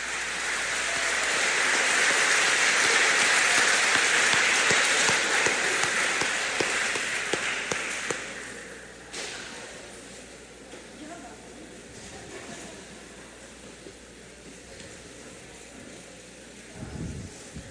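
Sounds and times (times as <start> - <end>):
crowd applauding: 0.0 - 8.7.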